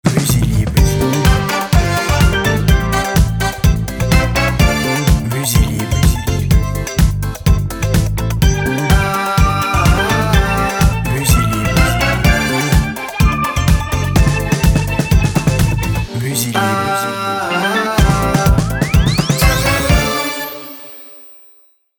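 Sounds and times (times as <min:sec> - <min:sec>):
disco jingle: 0:00.1 - 0:21.3.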